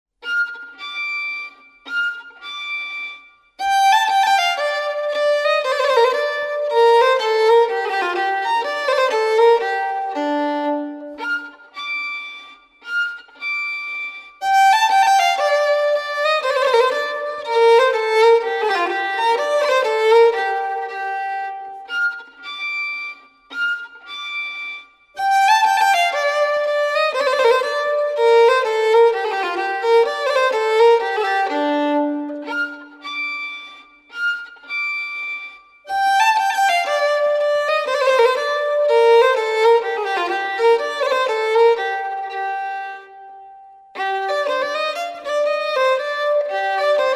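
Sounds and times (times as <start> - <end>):
solo polska folk dance tune: 0.2 - 47.1.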